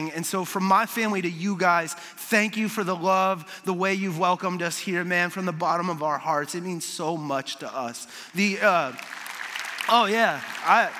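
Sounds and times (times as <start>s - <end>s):
speech: 0.0s - 9.2s, 9.9s - 10.9s
audience applause: 8.5s - 10.9s.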